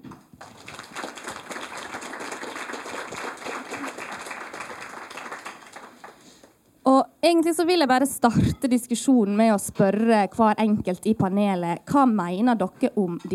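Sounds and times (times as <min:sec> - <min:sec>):
crowd applauding: 0:00.1 - 0:06.6
speech: 0:06.9 - 0:13.3.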